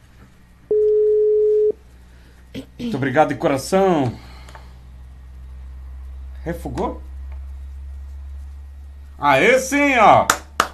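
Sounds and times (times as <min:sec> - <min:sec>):
telephone ringback tone: 0:00.7 - 0:01.8
speech: 0:02.8 - 0:04.2, 0:06.4 - 0:07.1, 0:09.2 - 0:10.4.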